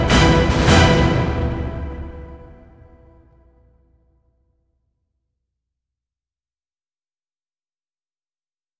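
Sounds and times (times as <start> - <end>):
choir singing: 0.0 - 3.3.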